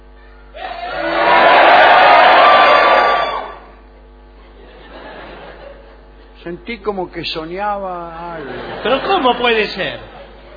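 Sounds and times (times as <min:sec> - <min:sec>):
audience shouting loudly on cue: 0:00.6 - 0:03.7
laughter: 0:04.4 - 0:06.4, 0:08.2 - 0:10.5
speech: 0:06.5 - 0:10.1.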